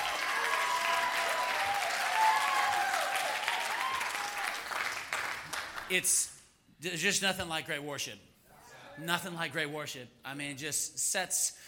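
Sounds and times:
audience applause for worship team: 0.0s - 5.9s
speech: 5.9s - 8.3s, 9.0s - 11.6s.

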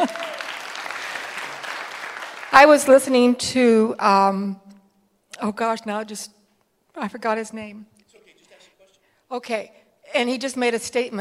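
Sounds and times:
speech: 0.0s - 0.2s, 2.6s - 4.7s, 5.4s - 6.4s, 7.0s - 7.9s, 9.3s - 11.1s
person applauding: 0.0s - 2.6s.

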